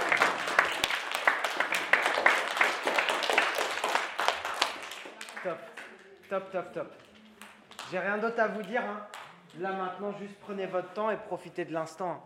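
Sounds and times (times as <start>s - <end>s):
people applauding: 0.0s - 6.4s, 7.0s - 9.6s
speech: 6.3s - 7.1s, 7.9s - 12.2s.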